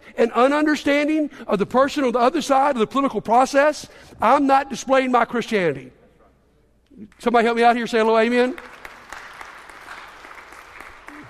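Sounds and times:
speech: 0:00.2 - 0:06.0, 0:07.0 - 0:08.8
audience clapping: 0:08.1 - 0:11.2.

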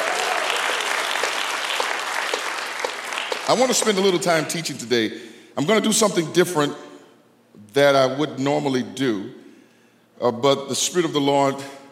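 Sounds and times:
audience clapping hands: 0:00.0 - 0:04.5
speech: 0:03.5 - 0:06.9, 0:07.6 - 0:09.4, 0:10.2 - 0:11.8.

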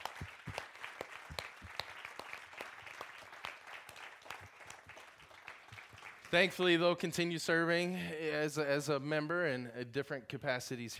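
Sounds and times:
round of applause: 0:00.0 - 0:06.8
speech: 0:06.3 - 0:10.9.

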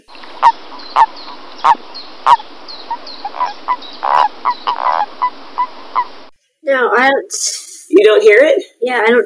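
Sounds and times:
toad giving short nasal honking calls: 0:00.0 - 0:06.3
steady hiss: 0:00.0 - 0:06.6
speech: 0:06.7 - 0:09.2.

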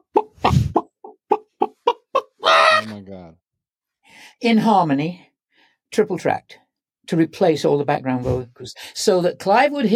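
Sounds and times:
voice imitating chicken clucking in place of backing vocals: 0:00.0 - 0:03.0
speech: 0:04.4 - 0:05.3, 0:05.9 - 0:09.9.

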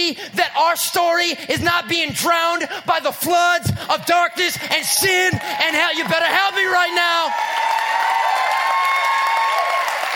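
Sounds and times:
speech: 0:00.1 - 0:08.4
audience cheering: 0:04.6 - 0:10.1
audience applauding: 0:05.3 - 0:10.1.

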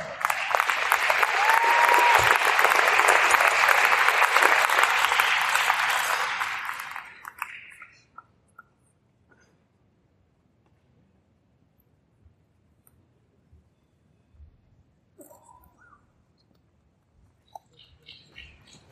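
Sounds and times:
large audience clapping: 0:00.0 - 0:08.0.

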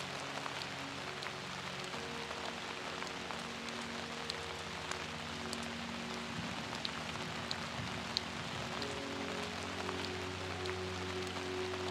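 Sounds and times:
peaceful piano melody: 0:00.0 - 0:11.9
steady rain patter: 0:00.0 - 0:11.9.

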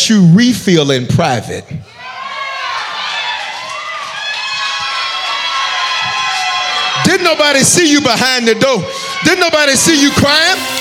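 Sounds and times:
speech: 0:00.1 - 0:01.9, 0:07.1 - 0:10.7
church audience shouting: 0:01.8 - 0:10.7.

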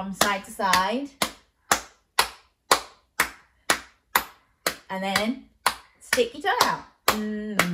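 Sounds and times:
speech: 0:00.0 - 0:01.3, 0:04.9 - 0:07.7
hands clapping: 0:00.2 - 0:07.7.

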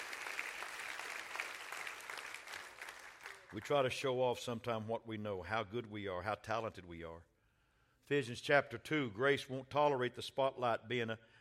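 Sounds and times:
audience clapping hands: 0:00.0 - 0:03.9
speech: 0:03.5 - 0:07.3, 0:08.1 - 0:11.3.

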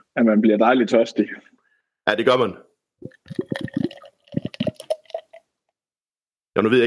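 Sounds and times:
speech: 0:00.2 - 0:01.5, 0:02.1 - 0:03.4, 0:06.6 - 0:06.8
beer glugging and splashing into a glass: 0:03.0 - 0:05.5.

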